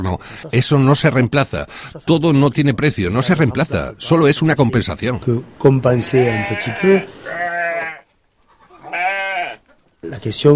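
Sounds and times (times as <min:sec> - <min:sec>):
speech: 0:00.0 - 0:07.4, 0:10.1 - 0:10.5
sheep bleating: 0:05.9 - 0:09.7.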